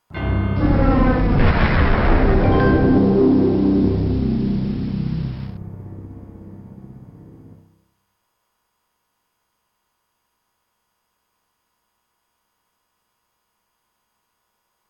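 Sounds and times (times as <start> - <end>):
soundscape: 0.1 - 7.6.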